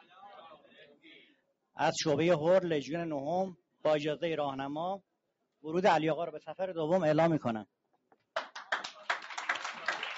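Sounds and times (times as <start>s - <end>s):
speech: 1.8s - 7.8s
audience clapping at a meeting: 8.3s - 10.1s.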